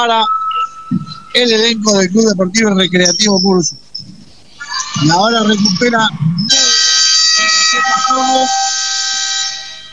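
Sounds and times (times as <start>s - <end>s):
speech: 0.0s - 3.8s, 5.0s - 6.6s, 7.7s - 8.6s
buzzer ending the first period: 6.5s - 9.9s.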